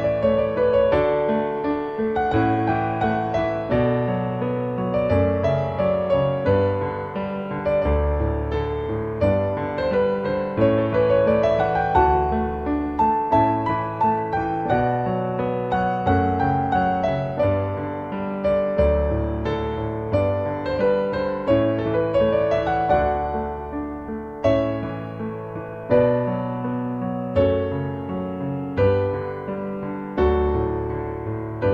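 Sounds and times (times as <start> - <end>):
piano canon: 0.0 - 31.7.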